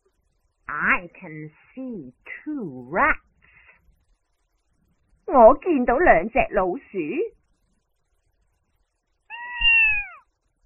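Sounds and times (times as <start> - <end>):
speech: 0.7 - 3.3, 5.3 - 7.4
cat meowing: 9.3 - 10.3.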